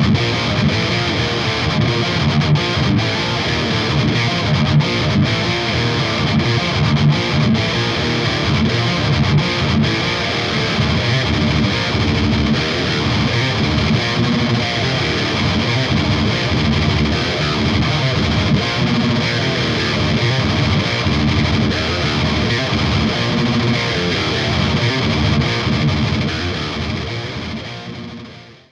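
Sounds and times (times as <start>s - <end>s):
electric guitar: 0.0s - 28.6s.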